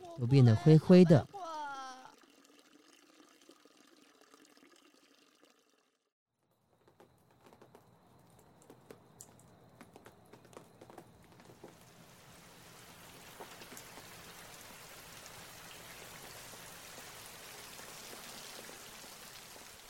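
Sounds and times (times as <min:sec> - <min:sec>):
speech: 0:00.2 - 0:01.3
heavy rain pouring down: 0:11.6 - 0:19.8.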